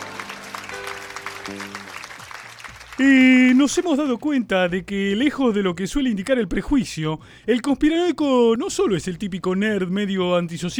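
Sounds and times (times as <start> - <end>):
audience applause: 0.0 - 4.0
speech: 1.5 - 1.9, 3.0 - 10.7.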